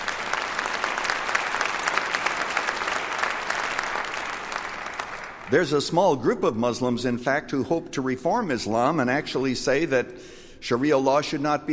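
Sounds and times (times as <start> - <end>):
audience clapping: 0.0 - 5.8
speech: 5.5 - 11.7.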